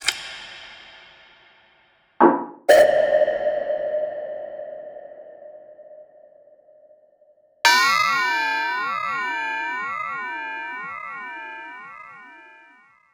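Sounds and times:
percussion: 0:00.0 - 0:03.9, 0:07.7 - 0:13.1.

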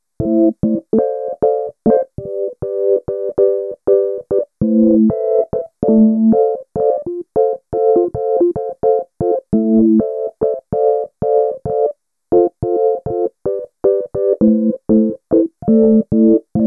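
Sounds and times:
fuzzy electric piano chords in electro lounge style: 0:00.2 - 0:16.6.

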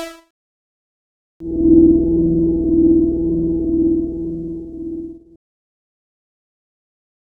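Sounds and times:
tone: 0:01.4 - 0:05.3.

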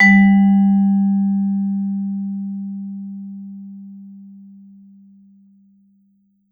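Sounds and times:
vibraphone note: 0:00.0 - 0:02.2.

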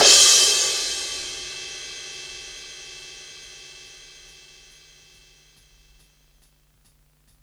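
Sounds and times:
drum hits: 0:00.0 - 0:05.2
live grunge crash cymbal: 0:00.0 - 0:06.1.

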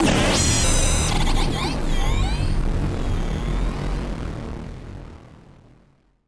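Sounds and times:
malfunctioning synth: 0:00.0 - 0:04.8.

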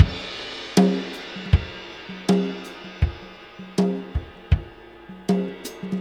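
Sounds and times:
laid-back tom groove: 0:00.0 - 0:05.9.

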